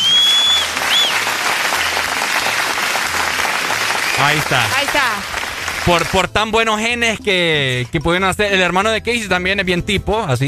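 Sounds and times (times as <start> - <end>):
applause: 0.0 - 6.4
speech: 4.2 - 10.4.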